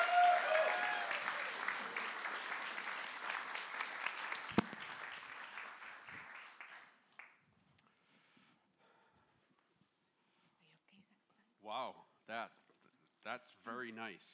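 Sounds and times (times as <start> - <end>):
church congregation applauding to welcome a guest speaker: 0.0 - 7.4
speech: 13.4 - 14.3.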